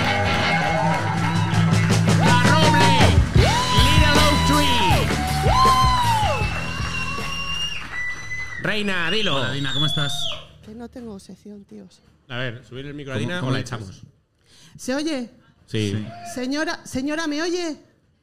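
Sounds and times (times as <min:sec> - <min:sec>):
applause: 0:00.0 - 0:10.3
speech: 0:08.7 - 0:17.9.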